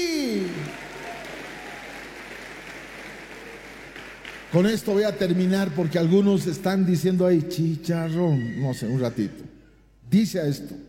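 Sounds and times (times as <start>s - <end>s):
audience applause: 0.0s - 5.0s
speech: 4.5s - 9.5s, 10.1s - 10.8s.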